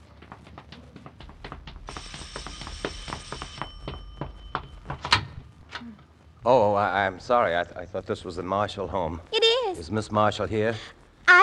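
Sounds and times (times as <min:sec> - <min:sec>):
doorbell ringing: 0:02.0 - 0:05.5
speech: 0:06.4 - 0:11.4.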